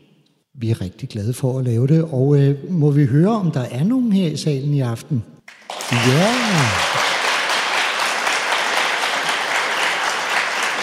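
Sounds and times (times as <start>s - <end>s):
speech: 0.6s - 7.1s
crowd applauding steadily: 5.5s - 10.8s.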